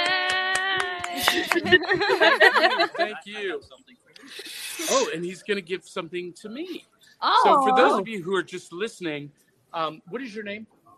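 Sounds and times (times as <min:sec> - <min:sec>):
audience clapping: 0:00.0 - 0:02.9
laughter: 0:00.8 - 0:05.5, 0:07.5 - 0:08.4
speech: 0:01.2 - 0:10.8.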